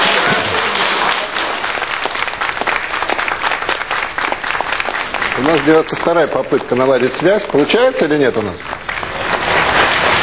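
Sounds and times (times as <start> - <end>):
audience applause: 0.0 - 10.2
speech: 5.5 - 8.8.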